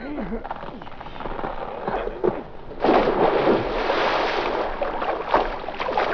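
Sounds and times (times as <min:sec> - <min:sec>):
water churning and gurgling as truck sinks: 0:00.5 - 0:06.1
truck plunging into water: 0:02.8 - 0:06.1.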